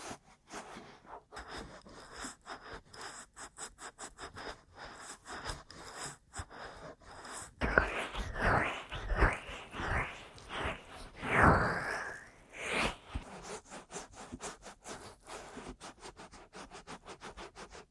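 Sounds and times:
aggressive ear massage: 7.6 - 14.8.

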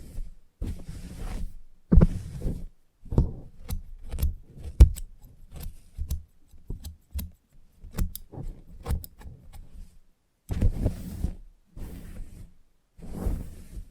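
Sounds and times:
brushing and rustling: 0.0 - 13.9
scissors snipping during a salon haircut: 3.6 - 9.7.

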